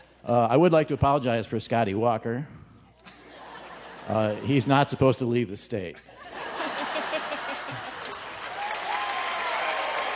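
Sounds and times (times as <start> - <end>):
speech: 0.2 - 2.6, 4.1 - 6.6
laughter: 3.0 - 4.7, 6.0 - 8.5
audience applause: 7.3 - 10.1.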